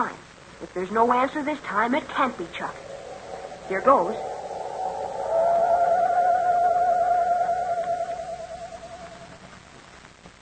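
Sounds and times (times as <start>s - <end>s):
speech: 0.0s - 2.9s, 3.7s - 4.3s
person imitating owl screech call: 2.5s - 9.4s.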